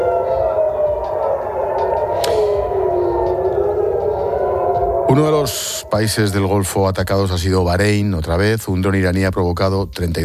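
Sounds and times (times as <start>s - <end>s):
air raid alarm siren: 0.0s - 7.6s
speech: 5.1s - 10.2s.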